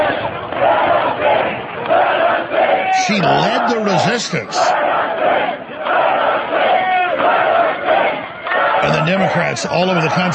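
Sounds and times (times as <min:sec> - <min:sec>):
protest crowd chanting inside a state Capitol: 0:00.0 - 0:10.3
speech: 0:03.1 - 0:05.7, 0:09.0 - 0:10.3.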